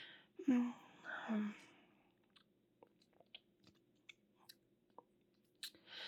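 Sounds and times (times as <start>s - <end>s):
person chewing and crunching food: 2.1s - 5.9s.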